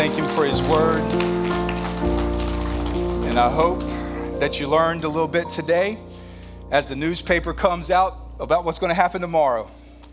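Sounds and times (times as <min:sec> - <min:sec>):
church audience applause: 0:00.0 - 0:04.4
sustained keyboard chords: 0:00.0 - 0:10.1
speech: 0:03.4 - 0:06.1, 0:06.7 - 0:09.8.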